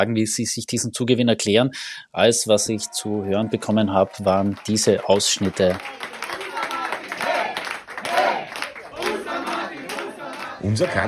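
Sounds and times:
speech: 0.0 - 6.2, 10.6 - 11.0
large crowd applauding the chancellor: 2.7 - 11.0.

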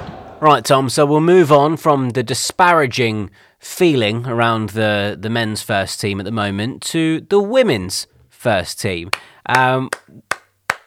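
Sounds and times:
speech: 0.4 - 10.3
hand claps: 9.1 - 10.8.

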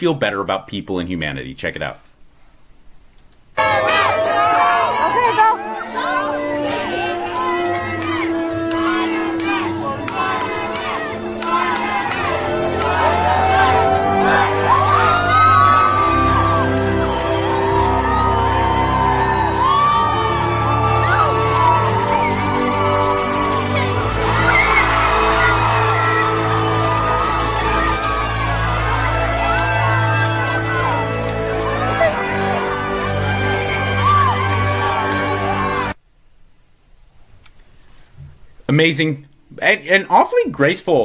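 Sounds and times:
speech: 0.0 - 2.1, 38.7 - 41.0
crowd cheering: 3.6 - 36.0.

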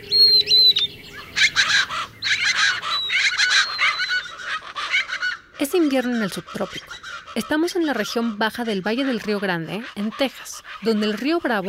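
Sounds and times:
high bird whistles in winter, Lower Rio Grande Valley: 0.0 - 4.3
raucous rasping bird calls in winter, Lower Rio Grande Valley: 0.0 - 11.6
speech: 5.7 - 11.6.

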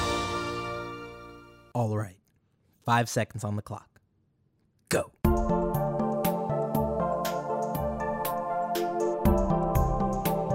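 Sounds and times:
VHS home video opening theme: 0.0 - 1.8, 5.3 - 10.5
speech: 1.8 - 2.2, 2.8 - 3.9, 4.9 - 5.5.

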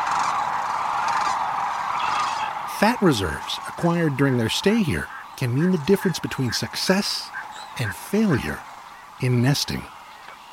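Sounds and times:
sandhill cranes calling as a large flock: 0.0 - 10.5
speech: 2.8 - 10.0.

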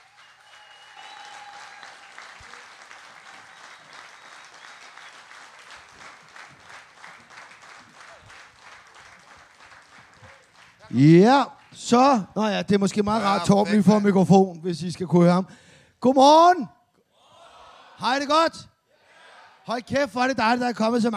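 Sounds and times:
audience applause for comedians Uffe Holm and Torben Chris: 0.0 - 11.9
speech: 10.9 - 16.8, 18.0 - 18.7, 19.7 - 21.1.

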